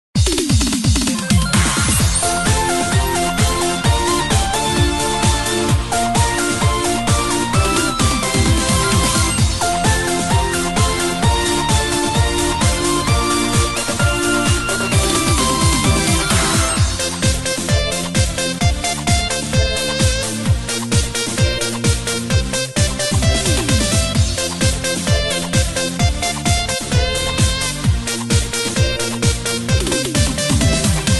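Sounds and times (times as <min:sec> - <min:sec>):
music: 0:00.2 - 0:31.1.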